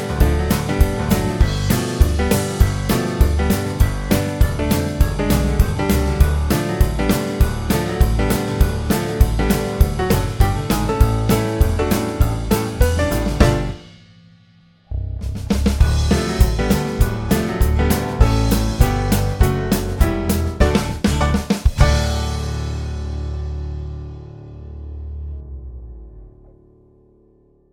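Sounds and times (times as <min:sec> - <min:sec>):
country blues music: 0:00.0 - 0:13.8, 0:15.8 - 0:24.1.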